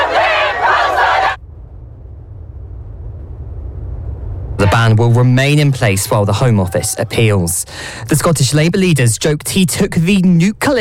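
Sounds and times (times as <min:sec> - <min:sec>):
crowd cheering and clapping outdoors: 0:00.0 - 0:01.4
low steady rumble: 0:00.0 - 0:10.8
speech: 0:04.8 - 0:10.8.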